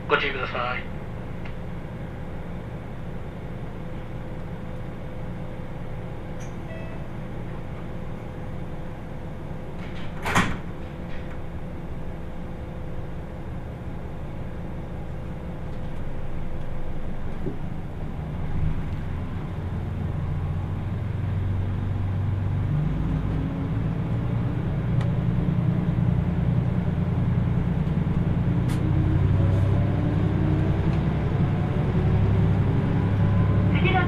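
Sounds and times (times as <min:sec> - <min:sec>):
Kyushu Odan limited express interior rumble on the Hohi Line: 0:00.0 - 0:34.0.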